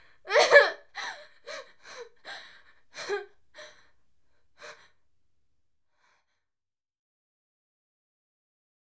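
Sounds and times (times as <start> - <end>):
woman breathing restlessly: 1.0 - 5.0.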